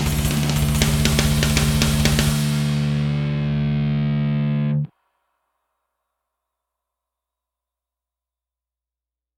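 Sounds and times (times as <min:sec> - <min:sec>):
generative drums: 0:00.0 - 0:04.9.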